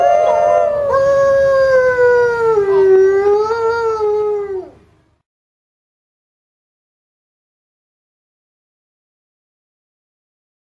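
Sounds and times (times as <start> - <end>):
wolf howl: 0.0 - 4.8.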